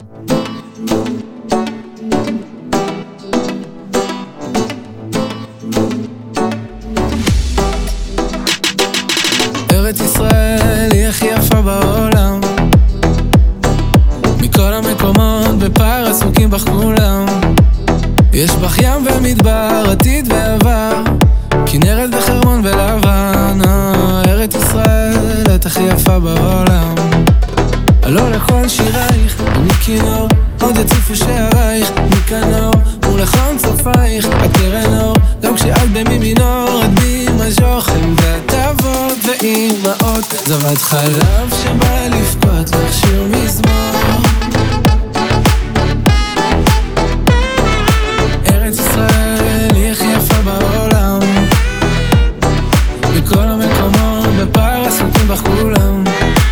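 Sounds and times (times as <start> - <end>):
remix music: 0.0 - 56.5.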